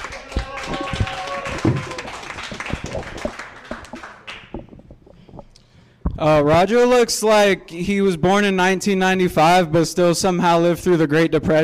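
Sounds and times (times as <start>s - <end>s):
audience applause at a comedy show: 0.0s - 5.2s
speech: 6.2s - 11.6s.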